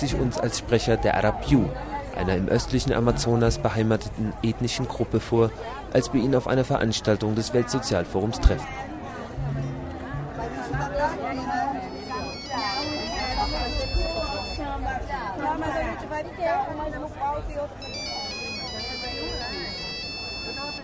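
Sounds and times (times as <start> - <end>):
speech: 0.0 - 9.7
crowd chatter: 0.0 - 20.8
mobile phone ringing: 11.9 - 14.6, 17.8 - 20.8.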